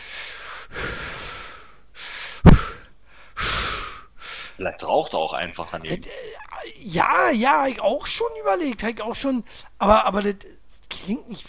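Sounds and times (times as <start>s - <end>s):
heavy breathing: 0.0s - 4.6s, 9.4s - 9.8s
speech: 4.6s - 11.4s.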